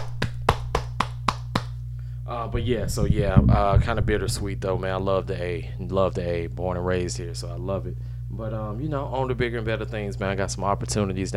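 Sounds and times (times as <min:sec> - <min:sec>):
round of applause: 0:00.0 - 0:01.7
speech: 0:02.3 - 0:11.3.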